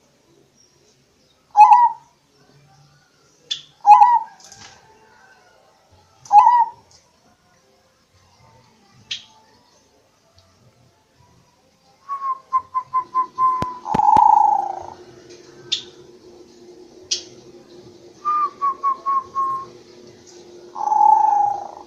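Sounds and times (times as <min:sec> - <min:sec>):
zebra dove purring trill and coos: 0:01.6 - 0:02.0, 0:03.8 - 0:04.4, 0:06.3 - 0:06.8, 0:12.8 - 0:21.8.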